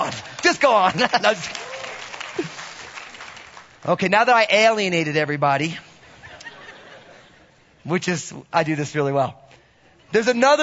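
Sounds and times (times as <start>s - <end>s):
audience applause: 0.0s - 4.0s
speech: 0.5s - 1.7s, 2.4s - 2.6s, 3.8s - 5.9s, 7.8s - 9.4s, 10.1s - 10.6s
laughter: 0.7s - 1.6s, 6.0s - 7.6s.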